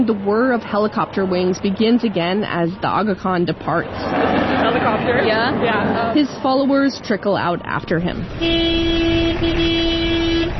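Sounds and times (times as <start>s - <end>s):
speech: 0.0s - 10.1s
dense traffic rumble: 0.0s - 10.5s
car horns blaring on a crowded narrow road in Pakistan: 8.2s - 10.5s.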